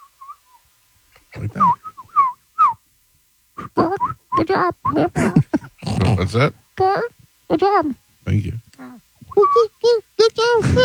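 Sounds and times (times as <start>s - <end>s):
speech: 1.4s - 1.9s, 4.0s - 8.6s, 9.4s - 10.8s
person whistling imitation of birdsong: 1.6s - 2.8s.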